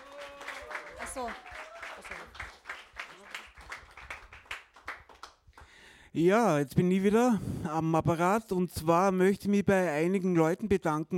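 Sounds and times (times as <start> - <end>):
small group applause: 0.0 - 5.8
speech: 1.2 - 2.6, 6.1 - 11.1.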